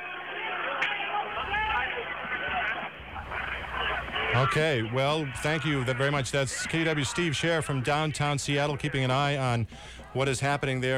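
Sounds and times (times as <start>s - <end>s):
crowd booing and reacting: 0.0s - 7.9s
speech: 4.4s - 10.9s.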